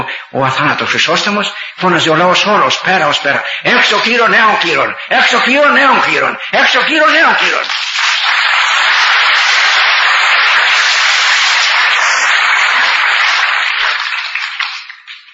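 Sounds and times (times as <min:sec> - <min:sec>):
speech: 0:00.3 - 0:07.9
applause from a large crowd: 0:06.6 - 0:15.3.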